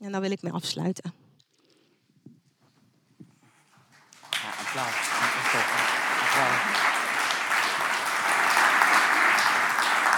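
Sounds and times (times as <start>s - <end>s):
speech: 0.0s - 1.2s
audience applause: 4.0s - 10.1s.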